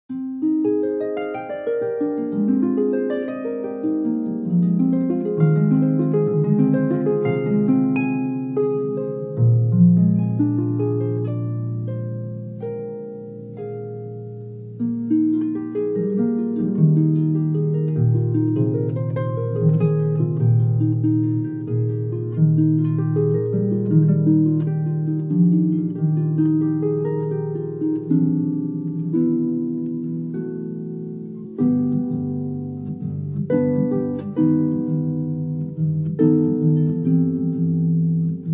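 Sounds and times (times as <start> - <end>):
harp: 0.1 - 38.5.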